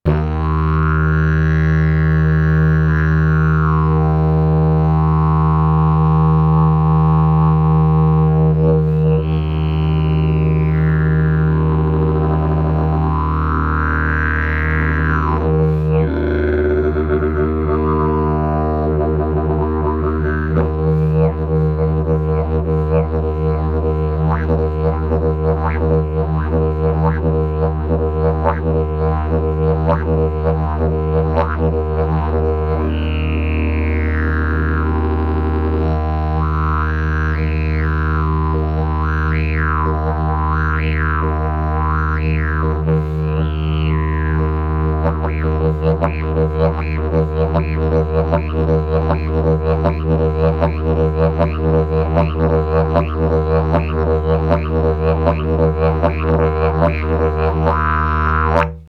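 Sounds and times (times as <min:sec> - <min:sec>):
didgeridoo: 0:00.0 - 0:58.8.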